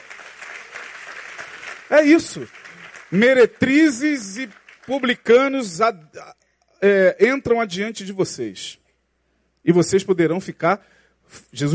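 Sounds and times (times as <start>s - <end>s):
audience applause: 0.0s - 5.3s
speech: 1.9s - 8.8s, 9.6s - 11.7s.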